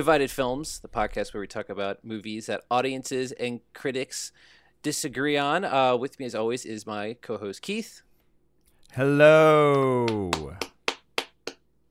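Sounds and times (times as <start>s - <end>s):
speech: 0.0s - 8.1s, 8.9s - 10.6s
brief clapping: 9.6s - 11.6s.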